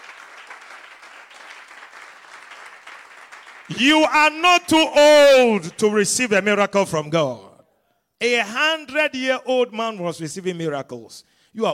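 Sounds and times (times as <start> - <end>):
audience clapping hands: 0.0 - 4.4
speech: 3.7 - 7.5, 8.2 - 11.7.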